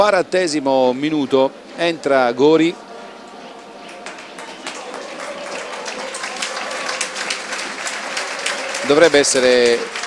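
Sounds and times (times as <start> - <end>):
speech: 0.0 - 2.8, 8.9 - 10.0
football crowd applauding a substituted player: 3.6 - 10.0.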